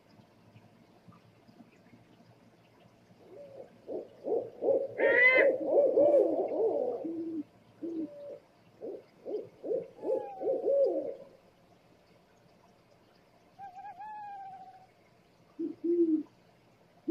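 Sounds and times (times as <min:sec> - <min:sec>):
owl hooting: 0:03.3 - 0:11.2, 0:13.6 - 0:14.9.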